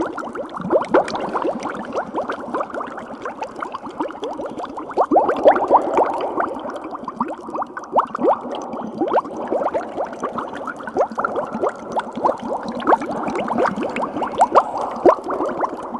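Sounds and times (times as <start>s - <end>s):
bubbles: 0.0s - 15.9s.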